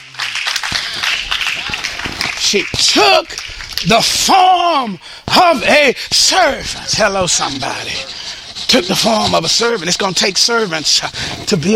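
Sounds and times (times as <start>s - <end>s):
audience clapping hands in praise: 0.0s - 5.0s
speech: 2.5s - 11.7s.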